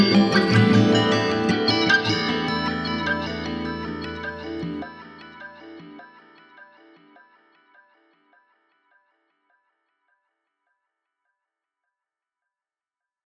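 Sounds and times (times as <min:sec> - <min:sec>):
instrumental music: 0:00.0 - 0:08.6.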